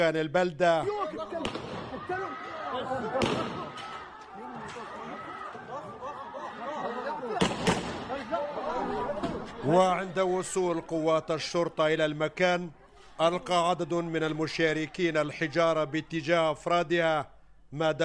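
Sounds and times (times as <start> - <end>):
speech: 0.0 - 1.6, 2.8 - 3.6, 9.6 - 18.0
laughter: 0.8 - 16.6
gunfire exchanged during a family brawl: 1.4 - 1.9, 3.2 - 3.8, 7.4 - 8.1.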